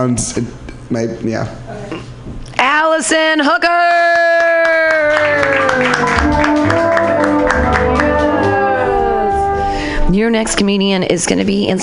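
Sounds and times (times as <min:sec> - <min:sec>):
speech: 0:00.0 - 0:01.9, 0:02.8 - 0:07.0, 0:10.1 - 0:11.8
audience clapping: 0:04.1 - 0:09.5.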